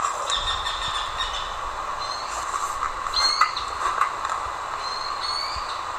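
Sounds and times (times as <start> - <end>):
Eared quetzal giving repeated squealing notes: 0.2 - 2.5, 3.1 - 3.9, 4.8 - 5.8.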